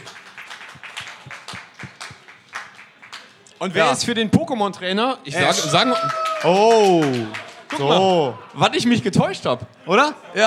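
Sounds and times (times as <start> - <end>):
audience applause: 0.0 - 3.4, 5.6 - 7.9
speech: 3.6 - 10.4.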